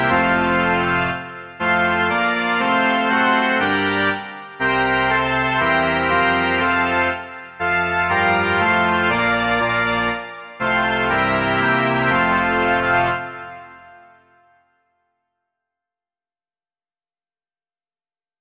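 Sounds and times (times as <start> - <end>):
organ: 0.0 - 14.6.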